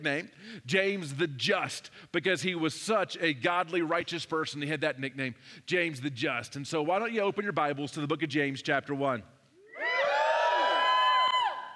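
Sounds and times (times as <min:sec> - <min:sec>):
speech: 0:00.0 - 0:09.4
church congregation cheering: 0:09.6 - 0:11.7.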